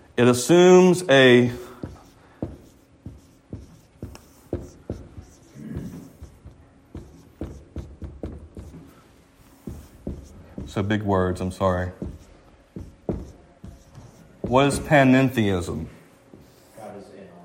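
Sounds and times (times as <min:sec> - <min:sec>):
speech: 0:00.2 - 0:01.6, 0:10.9 - 0:12.0, 0:14.5 - 0:16.0
pen scratching on paper in handwriting: 0:01.6 - 0:11.0, 0:11.9 - 0:14.9.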